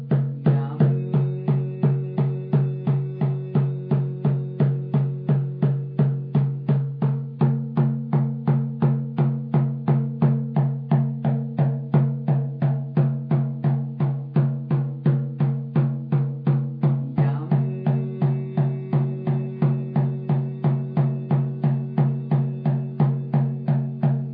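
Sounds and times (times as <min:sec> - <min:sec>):
grounding drum: 0:00.0 - 0:24.3.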